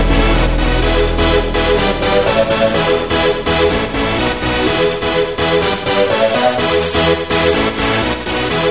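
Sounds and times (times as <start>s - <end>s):
siren: 0.0s - 8.0s
melody: 0.0s - 8.6s.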